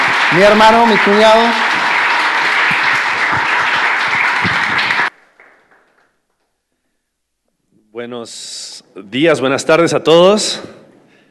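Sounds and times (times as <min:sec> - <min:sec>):
loud applause for the pastor: 0:00.0 - 0:06.5
speech: 0:00.3 - 0:01.7, 0:08.0 - 0:10.8.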